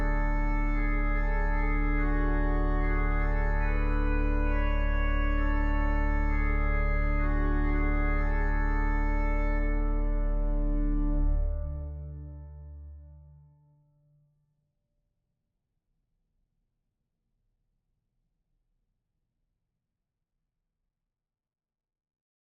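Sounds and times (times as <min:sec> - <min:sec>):
organ melody: 0:00.0 - 0:13.3.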